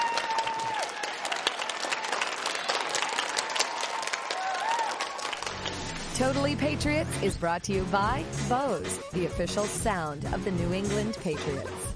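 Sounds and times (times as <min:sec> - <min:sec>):
audience round of applause: 0:00.0 - 0:06.0
speech: 0:06.2 - 0:11.8.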